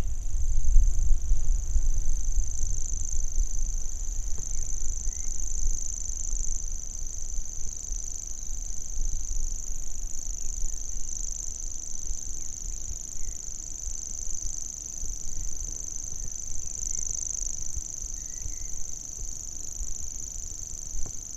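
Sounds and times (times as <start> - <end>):
grasshopper warbler singing: 0.0 - 21.3.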